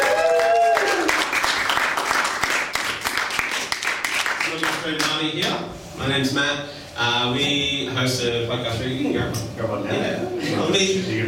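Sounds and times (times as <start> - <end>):
audience clapping welcoming performers to the stage: 0.0 - 5.3
speech: 6.1 - 11.2.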